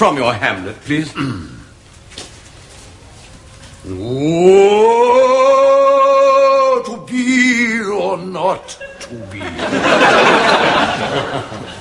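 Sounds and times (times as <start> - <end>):
speech: 0.0 - 1.6, 3.8 - 5.8, 8.1 - 11.7
person imitating a roar: 3.9 - 6.9
laughter: 8.6 - 11.7.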